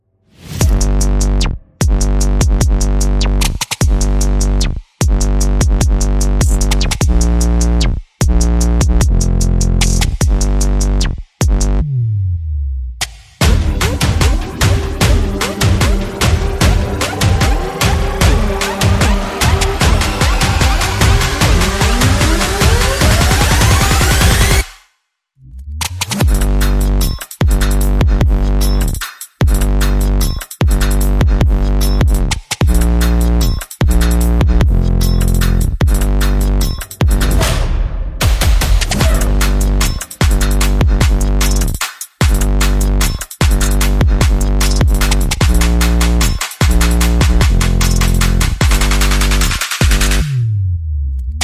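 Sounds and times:
percussion: 0.4 - 11.9, 12.9 - 24.9, 25.6 - 50.5, 51.1 - 51.4
bass: 0.4 - 24.7, 25.4 - 51.4
sound effects: 13.4 - 24.7, 36.6 - 41.0.

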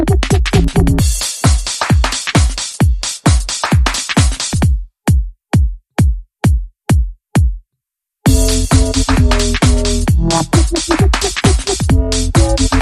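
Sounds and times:
bass: 0.0 - 1.0, 8.3 - 12.8
drums: 0.0 - 7.6, 8.3 - 12.8.

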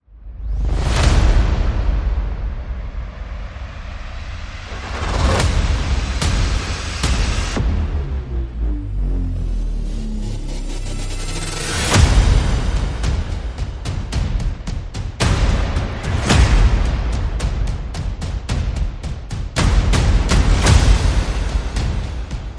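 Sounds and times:
percussion: 0.2 - 22.5
sound effects: 3.8 - 13.0.

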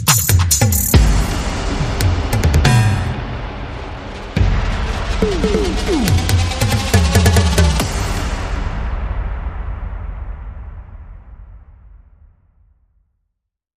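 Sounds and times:
percussion: 0.0 - 10.2
sound effects: 5.1 - 7.2.

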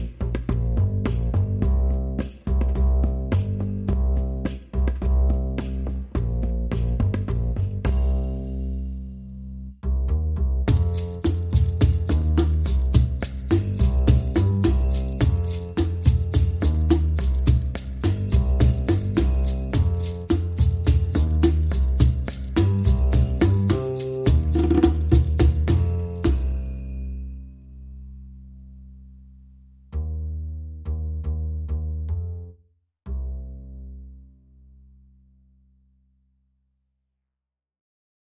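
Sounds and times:
drums: 0.0 - 8.2, 10.6 - 26.8
bass: 0.0 - 37.4.

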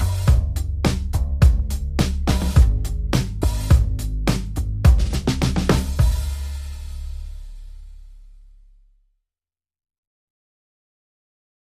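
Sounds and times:
drums: 0.0 - 7.8
bass: 0.0 - 9.2.

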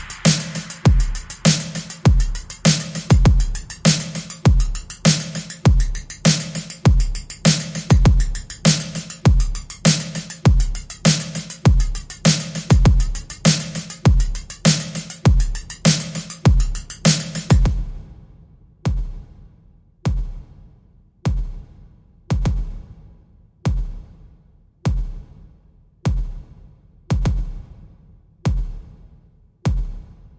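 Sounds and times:
drums: 0.0 - 30.3.

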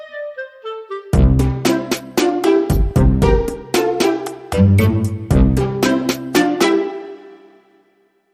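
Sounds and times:
modern percussion: 1.2 - 6.8.

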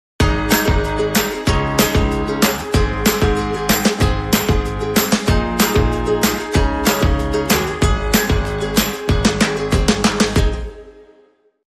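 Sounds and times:
acoustic underscore sting: 0.2 - 11.0.

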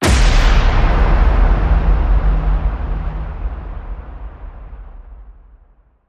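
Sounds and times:
big grinding hit: 0.0 - 5.8.

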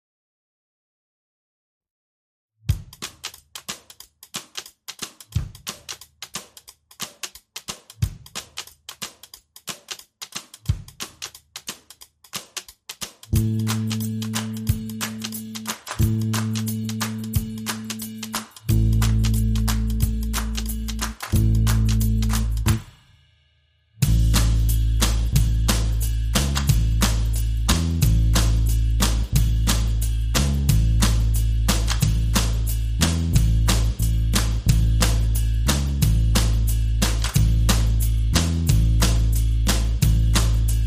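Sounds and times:
drums: 2.6 - 40.8
bass: 13.3 - 22.9, 24.0 - 40.8.

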